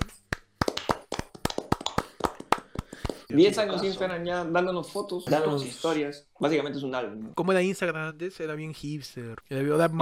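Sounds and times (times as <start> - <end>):
hands clapping: 0.0 - 3.6
speech: 3.3 - 9.9.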